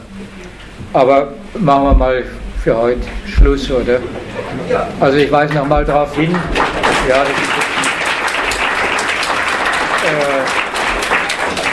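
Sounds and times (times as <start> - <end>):
speech: 0.2 - 7.6
audience clapping: 5.1 - 11.7.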